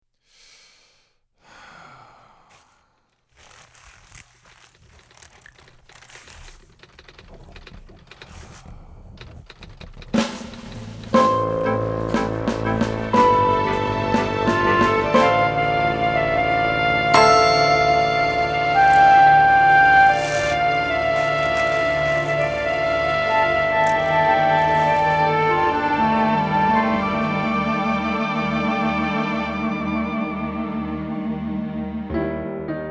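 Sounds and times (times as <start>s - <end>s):
ominous underscore music: 9.0s - 32.6s.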